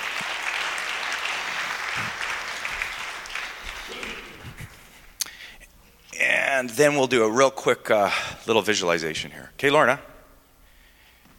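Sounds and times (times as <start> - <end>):
audience applause: 0.0 - 4.8
speech: 6.6 - 10.1.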